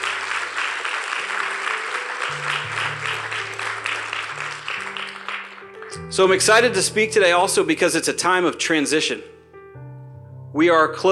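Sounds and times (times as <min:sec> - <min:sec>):
audience applause: 0:00.0 - 0:06.0
speech: 0:06.1 - 0:09.4, 0:10.6 - 0:11.1.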